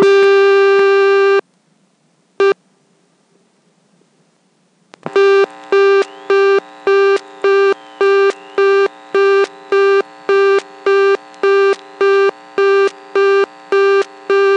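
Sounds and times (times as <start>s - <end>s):
reorder tone from an all-relay telephone switch after a second dialed digit: 0.0s - 0.3s, 5.1s - 14.5s
steady tone from an all-relay telephone switch: 0.0s - 1.4s, 5.1s - 14.5s.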